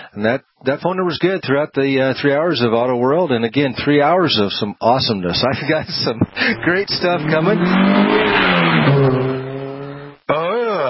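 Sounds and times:
speech: 0:00.2 - 0:09.3
car with loud raspy muffler passing by: 0:06.4 - 0:10.2.

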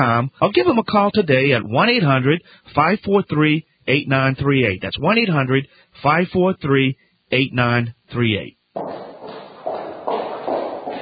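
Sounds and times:
low hiss: 0:00.0 - 0:08.8
speech: 0:00.0 - 0:09.1
footsteps on a street: 0:08.8 - 0:11.0.

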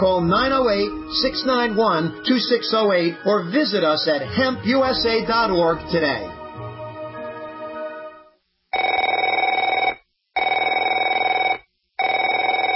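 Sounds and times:
speech: 0:00.0 - 0:06.4
telephone ringing: 0:08.7 - 0:12.7.

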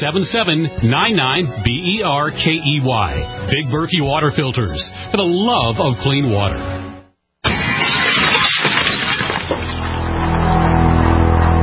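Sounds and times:
speech: 0:00.0 - 0:06.8
window glass smashing in a break-in: 0:07.4 - 0:10.4
glass shards scattering and tinkling: 0:07.8 - 0:10.5.

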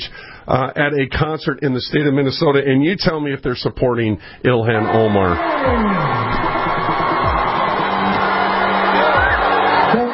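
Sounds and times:
speech: 0:00.5 - 0:06.3
large concert crowd booing: 0:04.7 - 0:10.1.

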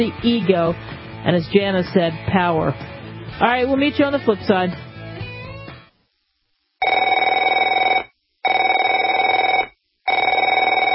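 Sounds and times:
speech: 0:00.0 - 0:04.9
telephone ringing: 0:06.8 - 0:10.9.

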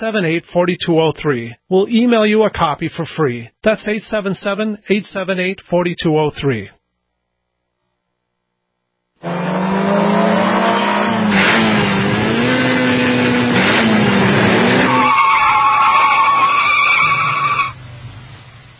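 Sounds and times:
speech: 0:00.0 - 0:06.8, 0:09.2 - 0:09.4
drag racing car engine revving: 0:09.2 - 0:16.5
drag racing car tire skid: 0:09.2 - 0:18.2.

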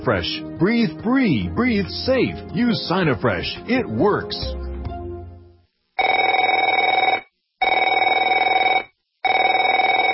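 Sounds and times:
speech: 0:00.0 - 0:04.6
telephone ringing with a warbling electronic trill: 0:06.0 - 0:10.1.

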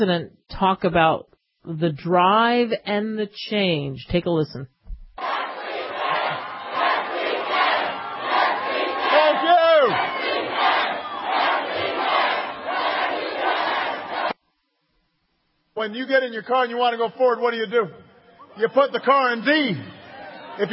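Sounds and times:
speech: 0:00.0 - 0:05.3, 0:15.8 - 0:20.0, 0:20.6 - 0:20.7
political rally crowd cheering: 0:05.2 - 0:14.4, 0:18.4 - 0:20.7.

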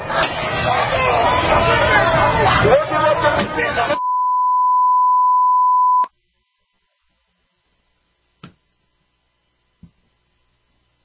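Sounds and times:
overlapping crowd shouting and chatter: 0:00.0 - 0:04.0
loud high-pitched censor bleep: 0:04.0 - 0:06.1.

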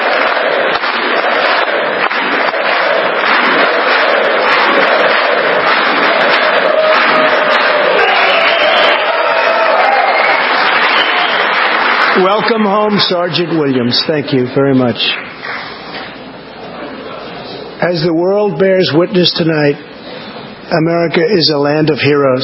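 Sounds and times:
crowd of senators and congressmen chanting: 0:00.0 - 0:10.2
loud clapping and cheering: 0:00.0 - 0:14.0, 0:15.0 - 0:15.8
speech: 0:12.4 - 0:15.3, 0:17.8 - 0:19.9, 0:20.7 - 0:22.4.

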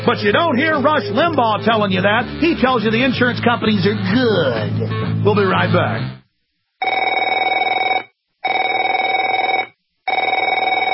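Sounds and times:
speech: 0:00.0 - 0:06.2
telephone ringing: 0:06.8 - 0:10.9.

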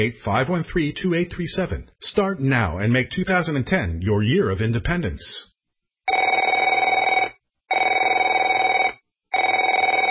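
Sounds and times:
speech: 0:00.0 - 0:05.5
telephone ringing with a trilling warble: 0:06.1 - 0:10.1.

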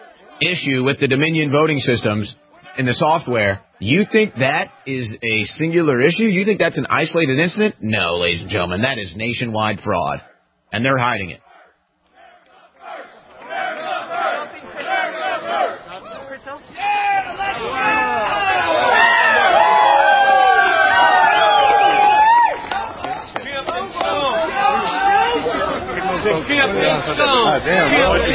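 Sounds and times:
large crowd chattering and cheering at rally: 0:00.0 - 0:05.1, 0:11.4 - 0:28.3
speech: 0:00.4 - 0:11.4, 0:26.8 - 0:28.3.

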